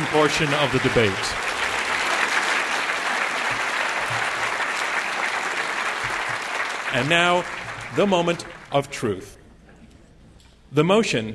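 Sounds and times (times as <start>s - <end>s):
audience applause: 0.0s - 9.0s
speech: 0.1s - 1.5s, 6.9s - 9.4s, 10.7s - 11.3s.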